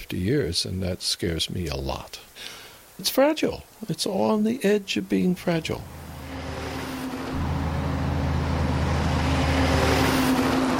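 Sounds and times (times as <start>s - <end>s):
speech: 0.1s - 6.0s
heavy logging truck engine passing on a nearby road: 5.6s - 10.7s.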